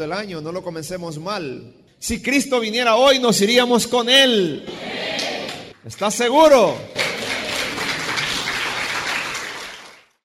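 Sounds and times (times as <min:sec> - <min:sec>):
speech: 0:00.0 - 0:05.0, 0:05.8 - 0:07.0
audience applause: 0:07.0 - 0:10.2.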